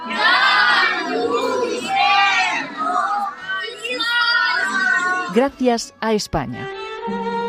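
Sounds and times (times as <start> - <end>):
children shouting loudly together: 0.0 - 5.3
speech: 5.4 - 7.3.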